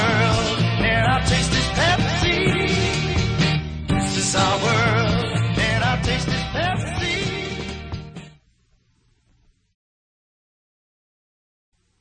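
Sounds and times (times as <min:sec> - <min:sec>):
guitar: 0:00.0 - 0:08.5.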